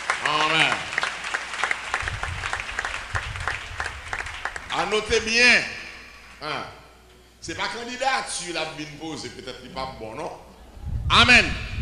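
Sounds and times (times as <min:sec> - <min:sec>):
audience applause: 0:00.0 - 0:05.2
low rumble of crowd noise: 0:01.8 - 0:06.4
speech: 0:04.8 - 0:05.8, 0:06.4 - 0:06.8, 0:07.4 - 0:10.5, 0:11.1 - 0:11.7.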